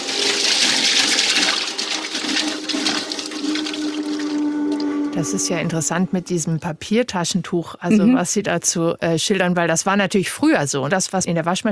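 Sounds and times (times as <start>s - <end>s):
Hollander beater grinding paper pulp in water: 0.0s - 5.0s
speech: 5.2s - 11.6s.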